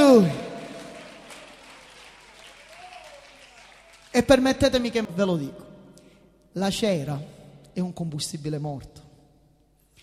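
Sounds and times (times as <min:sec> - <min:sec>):
audience applauding: 0:00.0 - 0:04.4
speech: 0:00.2 - 0:00.4, 0:04.2 - 0:05.7, 0:06.6 - 0:09.0.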